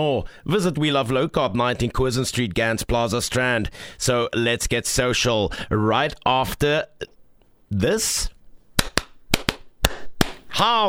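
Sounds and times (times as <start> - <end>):
speech: 0.0 - 8.4, 10.6 - 10.8
single hand clap: 8.8 - 10.4.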